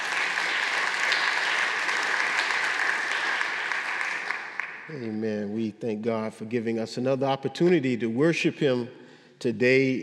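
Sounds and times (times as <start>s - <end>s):
audience hand clapping: 0.0s - 5.1s
speech: 4.9s - 10.0s.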